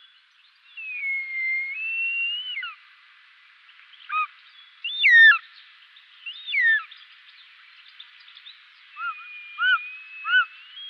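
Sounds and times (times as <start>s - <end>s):
Short-toed snake eagle giving whistled harmonic-rich calls: 0.8s - 2.8s, 4.1s - 5.5s, 6.3s - 6.9s, 9.0s - 10.8s.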